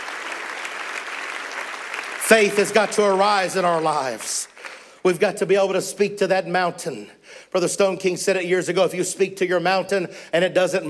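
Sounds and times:
audience clapping hands: 0.0s - 5.0s
speech: 2.3s - 10.8s.

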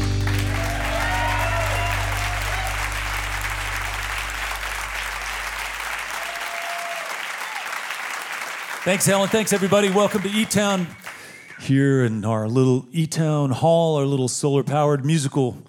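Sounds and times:
low tone: 0.0s - 6.3s
audience applause welcoming the host at a live music show: 0.0s - 11.6s
speech: 8.9s - 11.0s, 11.6s - 15.6s.

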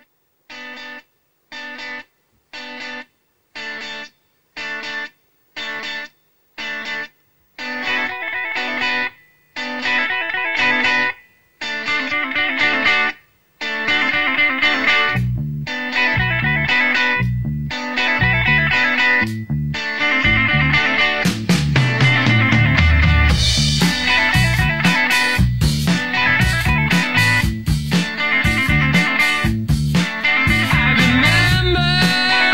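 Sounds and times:
choppy electric guitar chords in a rock song: 0.0s - 32.5s
bass and drums: 14.1s - 32.5s.

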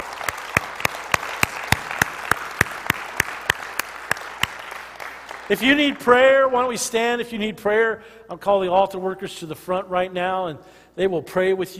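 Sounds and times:
audience clapping: 0.0s - 6.8s
speech: 5.5s - 11.7s.

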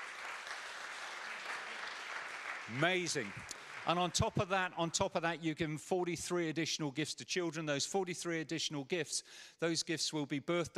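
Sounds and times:
audience applause: 0.0s - 4.6s
speech: 2.7s - 10.7s.

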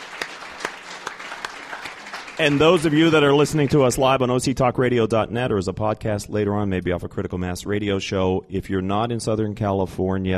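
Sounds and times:
audience round of applause: 0.0s - 4.2s
speech: 2.4s - 10.3s.

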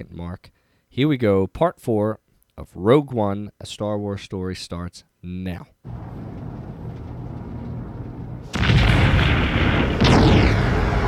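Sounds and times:
speech: 0.0s - 6.2s
planet exploding in a film scene: 5.9s - 11.0s
roaring rumble: 5.9s - 11.0s
rushing, whooshing debris: 8.4s - 11.0s.

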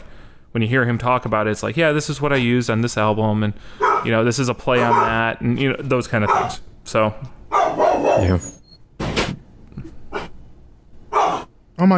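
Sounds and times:
speech: 0.6s - 7.4s, 8.2s - 8.6s
dogs barking: 3.8s - 5.3s, 6.1s - 6.6s, 7.5s - 8.6s, 11.1s - 11.6s.

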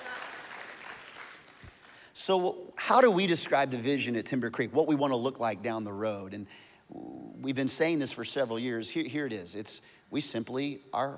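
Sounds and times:
audience clapping: 0.0s - 2.1s
speech: 2.2s - 11.1s.

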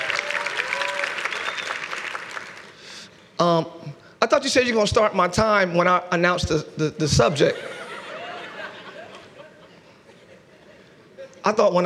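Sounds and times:
church congregation applauding during a service: 0.0s - 2.9s
speech: 4.4s - 7.8s, 11.5s - 11.8s
laughter: 7.4s - 11.4s.

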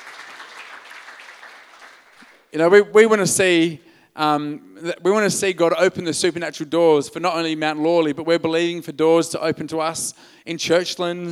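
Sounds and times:
audience applause: 0.0s - 2.5s
speech: 2.5s - 11.2s.

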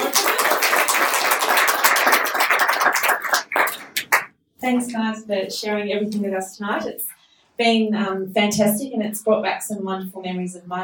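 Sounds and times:
audience applause: 0.0s - 4.3s
speech: 4.6s - 10.8s.

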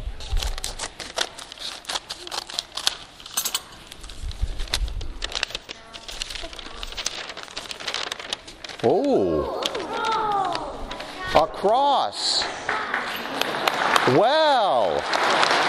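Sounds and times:
snipping and crinkling as a piece is cut off an object: 0.2s - 11.1s
speech: 11.3s - 12.6s, 14.0s - 15.5s.

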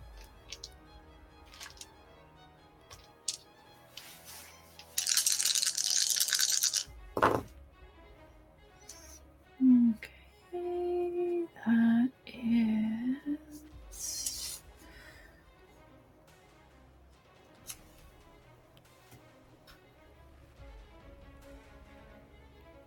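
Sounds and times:
dice rolling for damage during a live Dragonlance tabletop role-playing session: 0.2s - 0.8s, 1.5s - 1.9s, 2.9s - 3.4s, 4.8s - 7.4s
brief voices: 9.6s - 14.2s.

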